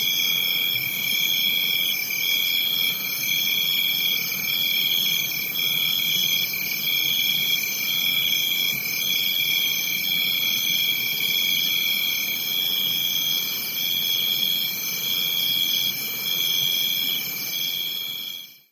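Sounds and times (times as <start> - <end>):
distant crickets buzzing: 0.0 - 18.7.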